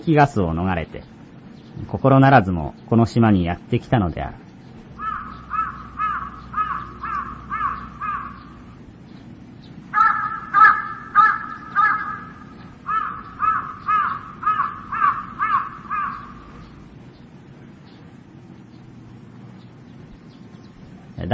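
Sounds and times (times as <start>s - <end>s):
speech: 0.0s - 1.2s, 1.8s - 4.4s
crows calling back and forth: 4.9s - 9.0s, 9.8s - 17.0s.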